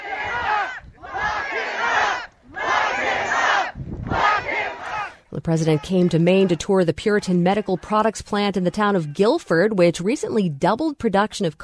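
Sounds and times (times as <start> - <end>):
protest crowd chanting: 0.0 - 8.1
speech: 5.5 - 11.6.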